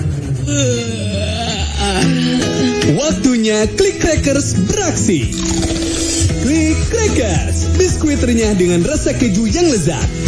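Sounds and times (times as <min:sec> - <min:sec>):
people yawning: 0:00.4 - 0:02.8
speech: 0:00.5 - 0:01.2, 0:02.0 - 0:10.2.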